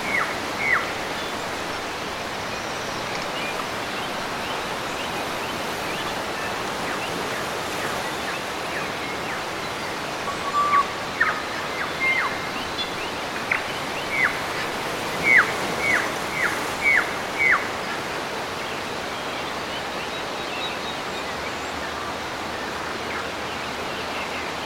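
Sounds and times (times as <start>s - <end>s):
waves crashing on the coast at Marlborough Sounds, New Zealand: 0.0s - 19.6s
birds chirping at Marlborough Sounds, New Zealand: 0.0s - 24.6s.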